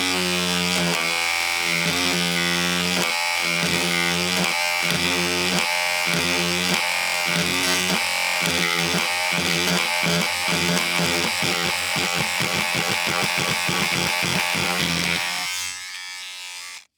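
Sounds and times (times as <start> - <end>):
electronic plastic beard trimmer buzzing: 0.0 - 16.9.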